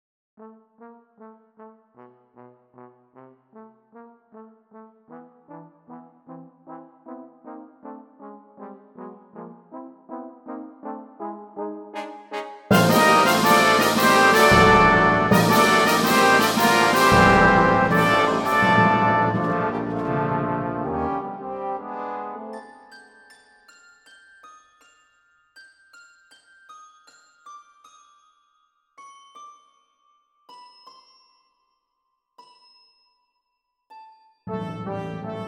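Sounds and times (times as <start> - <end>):
brass instruments: 0.4 - 22.9, 34.5 - 35.4.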